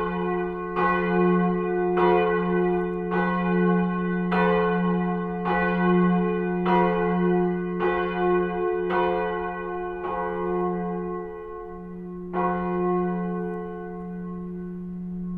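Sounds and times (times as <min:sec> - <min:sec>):
St. Lorenz church bell in Oberföhring during church renovation: 0:00.0 - 0:15.3.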